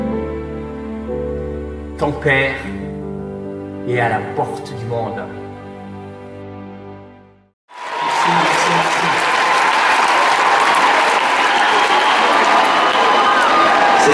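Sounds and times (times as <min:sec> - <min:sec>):
speech: 0:02.0 - 0:02.8, 0:03.9 - 0:05.4
audience applause at the end of a song: 0:07.7 - 0:14.1.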